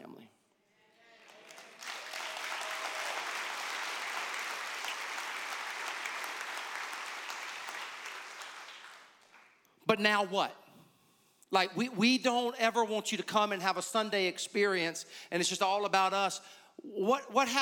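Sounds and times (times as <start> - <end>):
audience applause: 1.1 - 9.6
speech: 9.9 - 10.6, 11.5 - 17.6.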